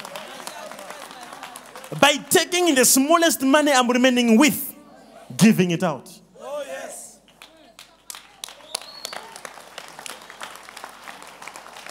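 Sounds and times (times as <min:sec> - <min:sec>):
audience clapping hands: 0:00.0 - 0:03.1, 0:07.2 - 0:11.9
speech: 0:01.9 - 0:04.7, 0:05.4 - 0:06.2.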